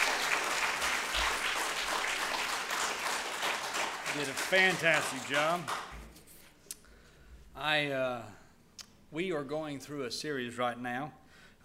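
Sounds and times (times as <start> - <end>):
audience applause: 0.0 - 6.0
speech: 4.2 - 5.8, 7.6 - 8.4, 9.1 - 11.2.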